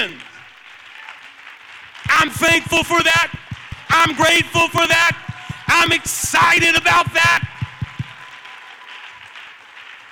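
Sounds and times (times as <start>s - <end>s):
audience clapping: 0.0s - 10.1s
low thump: 2.1s - 8.2s
speech: 2.2s - 7.5s.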